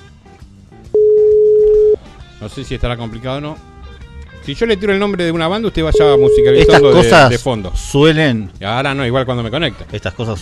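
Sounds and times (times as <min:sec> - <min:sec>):
telephone dial tone while placing a live on-air call: 0:01.0 - 0:02.0, 0:05.9 - 0:07.1
speech: 0:02.4 - 0:03.7, 0:04.4 - 0:10.4.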